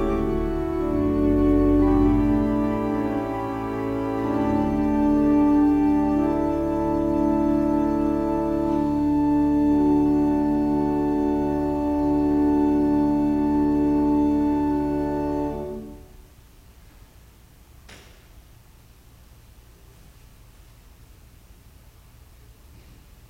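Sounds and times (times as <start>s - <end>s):
organ music: 0.0s - 16.3s.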